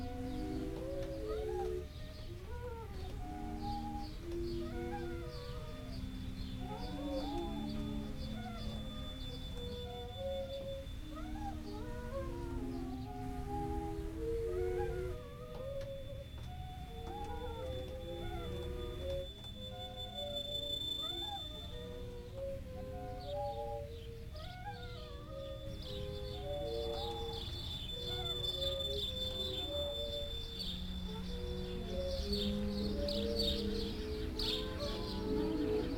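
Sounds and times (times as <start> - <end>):
backward piano: 0.0 - 35.9
birds singing: 0.0 - 35.9
song: 0.0 - 35.9.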